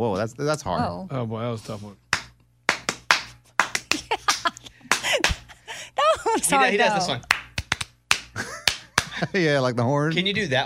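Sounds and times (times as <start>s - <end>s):
speech: 0.0s - 2.0s, 6.4s - 7.4s, 9.2s - 10.6s
hand clapping rhythm: 2.0s - 6.3s, 7.0s - 9.3s
laughter: 3.9s - 7.2s, 8.4s - 10.6s.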